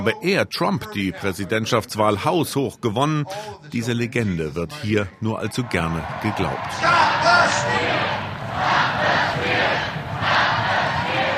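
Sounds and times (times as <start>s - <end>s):
speech: 0.0s - 8.8s
crowd chanting a slogan: 5.5s - 11.3s.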